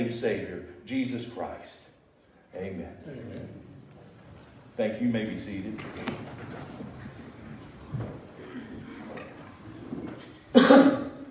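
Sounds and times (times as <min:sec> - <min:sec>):
speech: 0:00.0 - 0:01.8, 0:02.5 - 0:03.7, 0:04.8 - 0:07.0
person coughing: 0:10.5 - 0:11.2.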